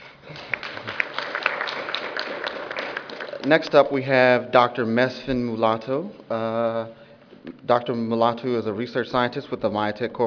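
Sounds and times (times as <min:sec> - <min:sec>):
audience applause: 0:00.2 - 0:03.9
speech: 0:03.4 - 0:10.2.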